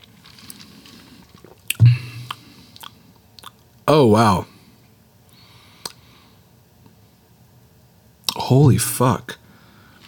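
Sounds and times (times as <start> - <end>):
person chewing a piece of Cake Bomb cake: 0.0 - 3.7
speech: 3.9 - 4.5, 8.5 - 9.4.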